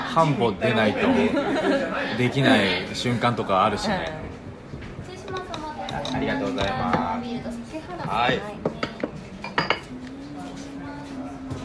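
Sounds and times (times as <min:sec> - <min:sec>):
speech: 0:00.2 - 0:04.3, 0:06.1 - 0:08.7
laughter: 0:00.8 - 0:02.8
dishes and cutlery clinking as food is served at a restaurant table: 0:05.2 - 0:07.2, 0:08.0 - 0:10.2.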